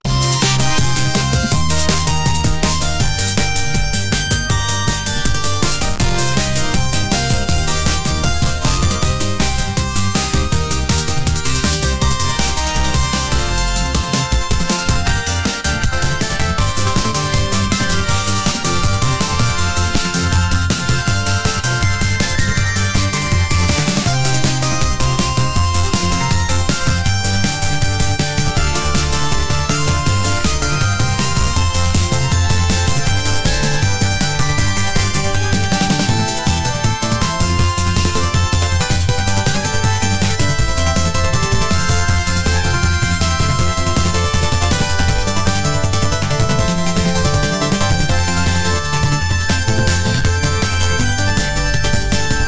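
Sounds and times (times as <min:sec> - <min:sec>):
Christmas synth music: 0:00.0 - 0:52.4.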